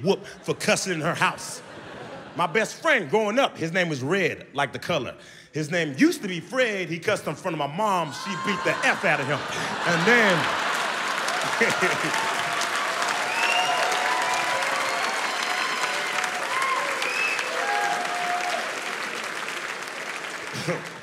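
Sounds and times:
speech: 0:00.0 - 0:01.7, 0:02.4 - 0:10.7, 0:11.4 - 0:12.3
laughter: 0:00.0 - 0:03.2, 0:08.1 - 0:13.5, 0:20.4 - 0:21.0
audience applauding: 0:08.2 - 0:21.0.

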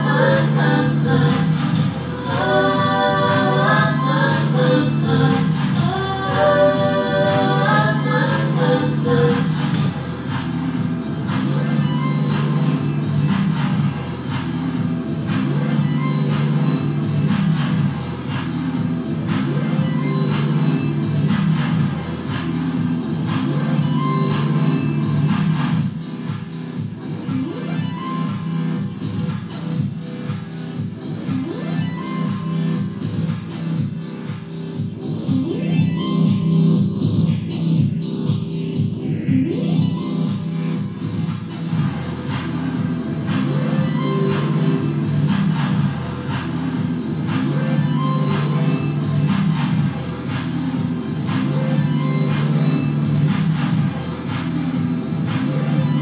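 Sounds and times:
Kaossilator Pro synthesizer loop: 0:00.0 - 0:56.0.

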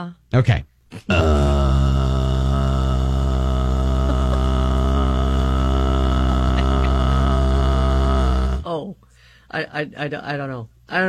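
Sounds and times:
speech: 0:00.0 - 0:01.6, 0:09.5 - 0:11.0
voice imitating white noise as a low buzzing drone: 0:01.0 - 0:08.7.

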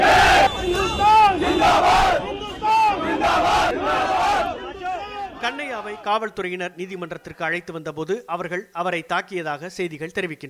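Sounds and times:
crowd chanting slogans in unison: 0:00.0 - 0:06.1
speech: 0:05.5 - 0:10.4.

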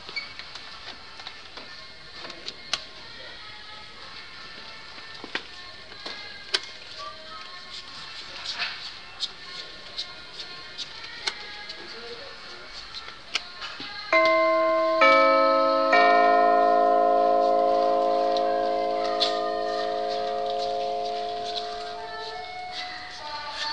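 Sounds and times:
door chimes tested at the DIY store: 0:14.2 - 0:23.0.

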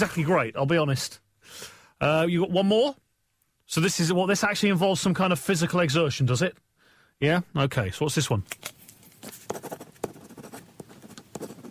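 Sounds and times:
speech: 0:00.0 - 0:03.0, 0:03.7 - 0:09.4
pen scratching across paper writing show prep: 0:09.2 - 0:11.6.

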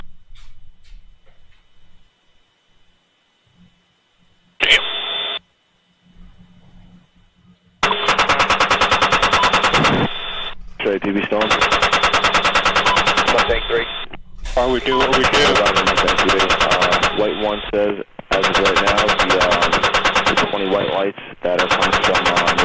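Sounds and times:
voices talking: 0:04.6 - 0:05.1, 0:09.4 - 0:22.6
radio chatter: 0:04.6 - 0:05.4, 0:09.1 - 0:22.6
combat automatic gunfire: 0:07.8 - 0:10.1, 0:11.4 - 0:13.6, 0:15.0 - 0:17.4, 0:18.3 - 0:20.8, 0:21.5 - 0:22.6.

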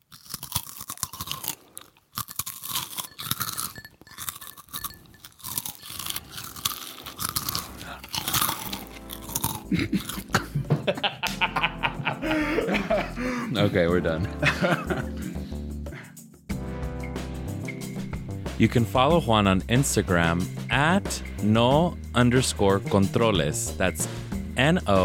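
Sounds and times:
crunching and chewing Cheetos for ASMR: 0:00.0 - 0:10.4
speech: 0:09.7 - 0:10.1, 0:13.6 - 0:15.2, 0:18.6 - 0:25.0
soft chuckles and laughter: 0:09.7 - 0:13.8, 0:14.4 - 0:15.4.

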